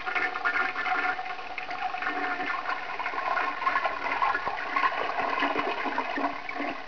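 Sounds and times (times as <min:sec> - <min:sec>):
toilet flush: 0:00.0 - 0:06.8.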